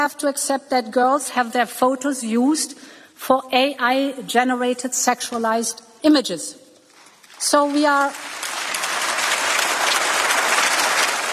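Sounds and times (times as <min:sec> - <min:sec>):
speech: 0:00.0 - 0:06.6, 0:07.4 - 0:08.5
audience applause: 0:07.9 - 0:11.3.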